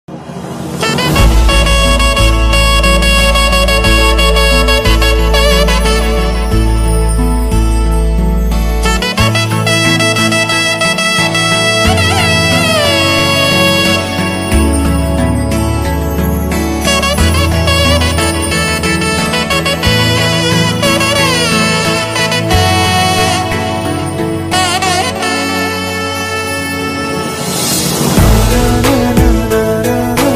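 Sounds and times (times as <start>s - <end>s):
romantic ringtone: 0.9s - 30.3s.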